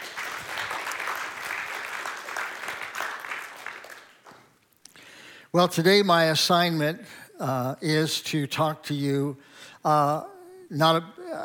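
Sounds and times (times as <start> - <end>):
audience clapping: 0.0 - 4.6
speech: 5.5 - 11.4.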